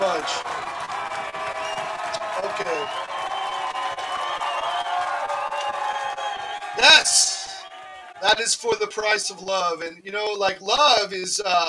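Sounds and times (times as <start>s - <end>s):
audience applause: 0.0s - 9.2s
speech: 2.6s - 3.1s, 6.8s - 7.3s, 8.2s - 11.6s.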